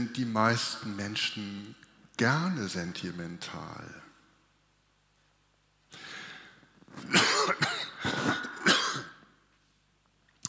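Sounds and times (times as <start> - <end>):
speech: 0.0 - 4.0
harsh coughing: 7.0 - 9.2
throat clearing: 7.0 - 9.2.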